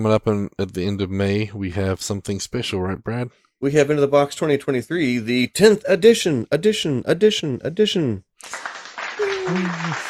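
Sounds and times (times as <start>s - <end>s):
speech: 0.0s - 8.7s, 9.5s - 10.0s
applause sound effect button: 8.4s - 10.0s.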